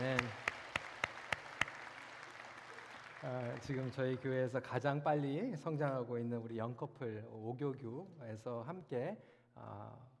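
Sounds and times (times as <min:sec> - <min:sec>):
audience clapping in unison: 0:00.0 - 0:04.5
speech: 0:03.2 - 0:10.1.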